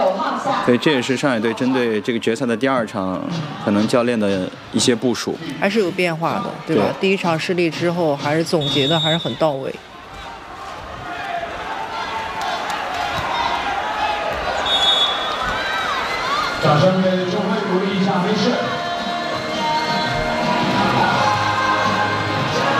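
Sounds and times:
speech: 0:00.7 - 0:09.9, 0:16.7 - 0:17.2
arena crowd applause: 0:10.2 - 0:22.7.

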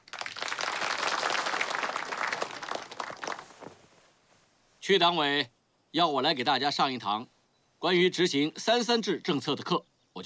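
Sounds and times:
room full of people applauding: 0:00.0 - 0:03.5
speech: 0:04.9 - 0:10.2.

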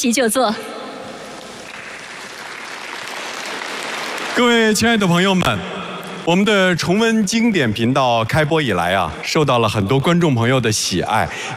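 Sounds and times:
speech: 0:00.0 - 0:00.7, 0:04.4 - 0:11.5
sustained applause from a large audience: 0:01.6 - 0:05.3.

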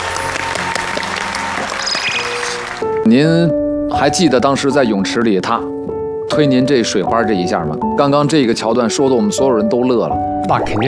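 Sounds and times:
audience applause: 0:00.0 - 0:03.0
speech: 0:03.1 - 0:10.8.

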